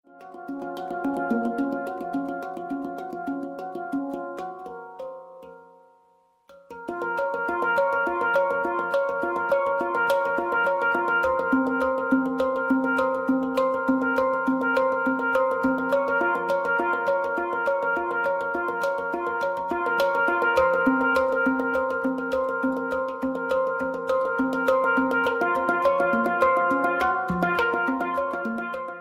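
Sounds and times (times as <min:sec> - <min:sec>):
hang drum: 0:00.1 - 0:05.7, 0:06.5 - 0:29.0.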